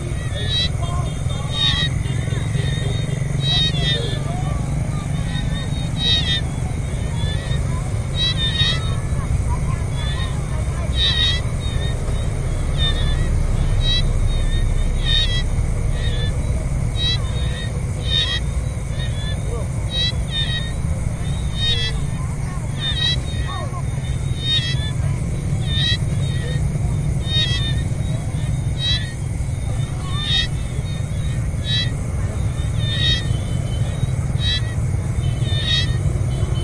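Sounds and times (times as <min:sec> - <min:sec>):
cars in background: 0:00.0 - 0:36.6
frogs by a pond at night in Siem Reap Cambodia: 0:00.0 - 0:36.6
people in background: 0:00.0 - 0:36.6.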